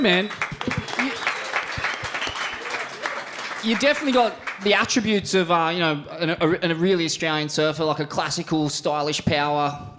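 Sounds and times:
speech: 0.0 - 0.8, 3.6 - 9.9
crowd applause: 0.0 - 5.1
crowd cheering and shouting: 0.5 - 3.8.

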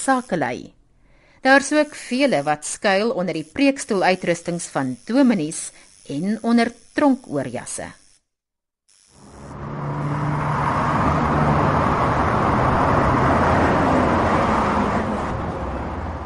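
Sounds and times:
speech: 0.0 - 0.8, 1.4 - 8.0
traffic on a busy road: 9.3 - 16.2.

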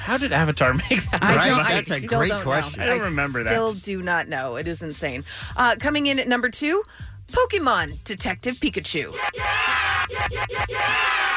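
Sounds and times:
speech: 0.1 - 11.1
laughter: 0.7 - 3.4, 9.2 - 11.3
remixed crowd cheering sound effect: 9.1 - 11.3.

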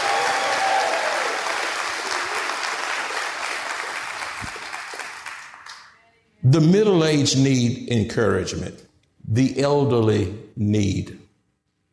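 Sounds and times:
audience applause: 0.0 - 6.0
speech: 6.4 - 11.2.

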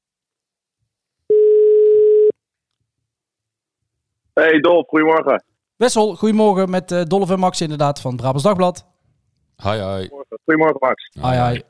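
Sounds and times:
telephone ringing tone while placing a call: 1.3 - 2.3
speech: 4.4 - 8.9, 9.6 - 11.6.

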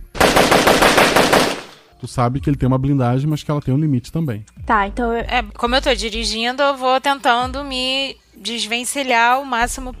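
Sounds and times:
machine gun firing at a car: 0.0 - 1.8
speech: 2.0 - 9.9.

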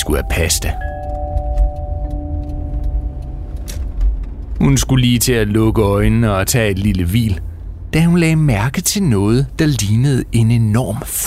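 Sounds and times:
speech: 0.0 - 0.9, 4.6 - 11.2
light rattles and ticks: 0.0 - 5.4
faint humming whine: 0.0 - 11.2
old station wagon engine and road rumble: 0.0 - 11.2.

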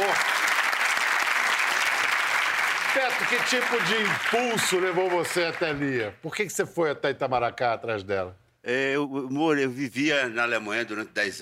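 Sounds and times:
audience applause: 0.0 - 6.2
speech: 3.0 - 11.4.

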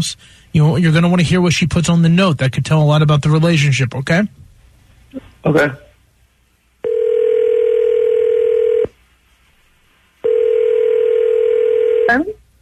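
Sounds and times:
speech: 0.0 - 4.4, 5.1 - 5.8, 12.1 - 12.3
telephone call being dialed: 6.8 - 8.9, 10.2 - 12.3.

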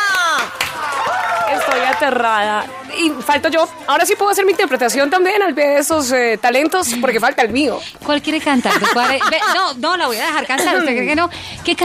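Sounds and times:
audience applause: 0.0 - 4.8
speech: 2.0 - 11.8
laughter: 8.4 - 11.1.

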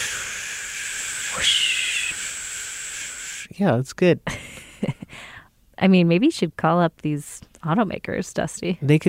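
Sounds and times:
voice imitating wind whoosh and tire drone: 0.0 - 3.5
speech: 1.4 - 1.6, 3.6 - 4.4, 5.8 - 9.0.

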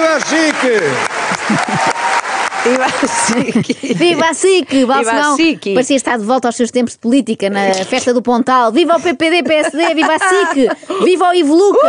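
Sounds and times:
hand clapping applause: 0.0 - 4.1
laughter: 0.0 - 4.9, 9.4 - 11.8
speech: 0.2 - 1.9, 2.6 - 11.8.

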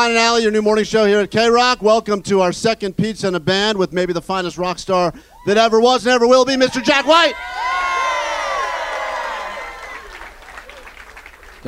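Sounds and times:
speech: 0.0 - 7.8
audience cheering: 6.5 - 11.6
audience clapping: 7.3 - 11.6.

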